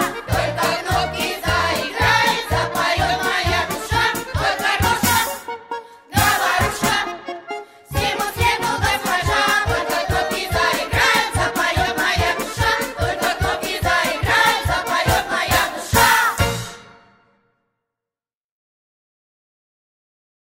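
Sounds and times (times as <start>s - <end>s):
vocal group singing: 0.0s - 5.5s, 6.1s - 7.2s, 7.9s - 16.7s
garmoshka accordion: 0.0s - 17.3s.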